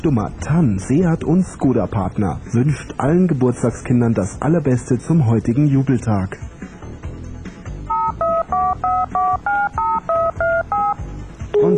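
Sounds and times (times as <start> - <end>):
speech: 0.0 - 6.5
low music bed: 0.0 - 11.7
touch-tone telephone dialing beeps: 7.9 - 11.0, 11.6 - 11.7.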